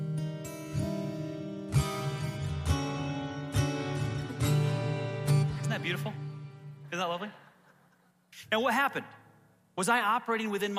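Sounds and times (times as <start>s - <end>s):
guitar chords and notes: 0.0s - 7.0s
speech: 5.8s - 6.2s, 6.9s - 7.4s, 8.4s - 9.2s, 9.8s - 10.7s.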